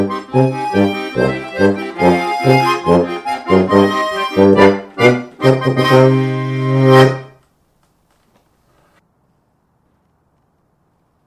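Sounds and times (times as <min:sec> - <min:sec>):
polka: 0:00.0 - 0:07.4.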